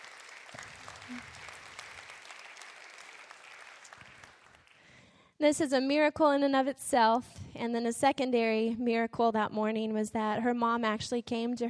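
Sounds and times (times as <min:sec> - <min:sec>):
audience clapping: 0:00.0 - 0:05.0
speech: 0:00.6 - 0:01.4, 0:05.4 - 0:11.6.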